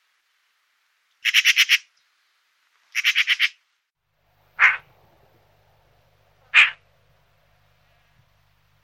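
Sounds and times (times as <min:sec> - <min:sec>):
Pica pica calling: 0:01.2 - 0:01.9, 0:02.9 - 0:03.6, 0:04.6 - 0:04.9, 0:06.5 - 0:06.8.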